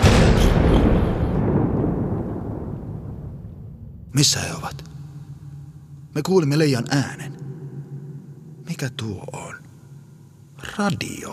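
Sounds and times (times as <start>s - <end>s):
explosion blasting a door open: 0.0s - 4.2s
speech: 4.2s - 4.9s, 6.1s - 7.4s, 8.7s - 9.6s, 10.6s - 11.3s.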